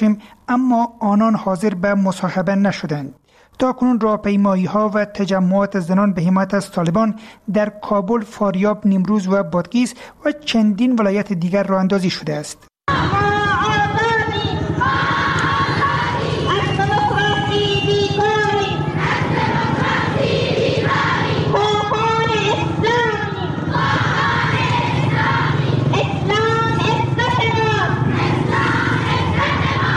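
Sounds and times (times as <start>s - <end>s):
speech: 0.0s - 13.3s
dozens of women chanting slogans at a rally in support of the Taliban in Zaranj, Nimroz: 14.6s - 29.9s.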